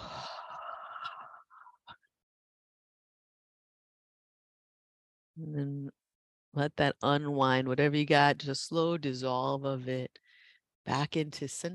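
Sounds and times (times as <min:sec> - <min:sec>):
slow breath out through the open mouth: 0:00.0 - 0:01.8, 0:10.2 - 0:10.7
speech: 0:05.4 - 0:06.0, 0:06.6 - 0:10.2, 0:10.8 - 0:11.7.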